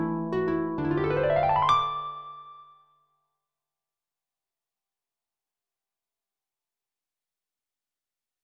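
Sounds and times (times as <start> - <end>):
solo harp playing carols: 0.0 - 2.3.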